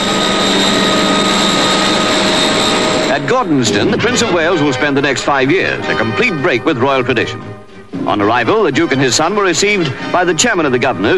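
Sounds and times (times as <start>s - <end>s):
Heron aircraft engines: 0.0s - 6.4s, 9.3s - 10.3s
speech: 3.3s - 11.1s.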